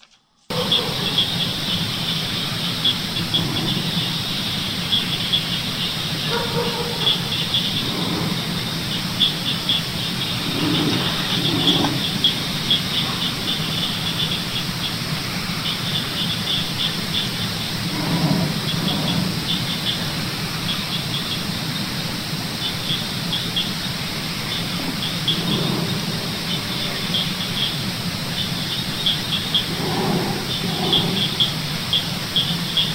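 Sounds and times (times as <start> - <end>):
low growling: 0.5 - 14.5, 16.8 - 20.8, 24.0 - 27.4, 29.4 - 32.0
dogs barking: 0.5 - 22.2, 22.8 - 32.9
crickets chirping: 0.5 - 32.9
frogs croaking: 0.5 - 32.9.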